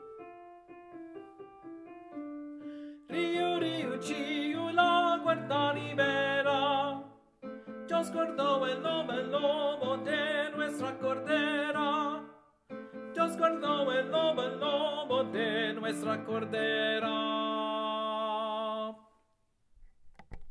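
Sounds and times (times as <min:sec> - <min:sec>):
alto voice singing: 0:03.1 - 0:19.1.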